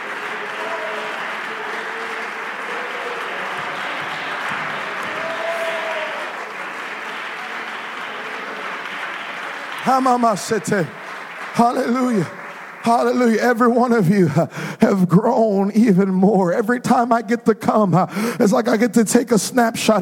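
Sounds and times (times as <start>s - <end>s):
audience clapping hands: 0.0s - 15.6s
speech: 9.9s - 11.0s, 11.6s - 19.9s.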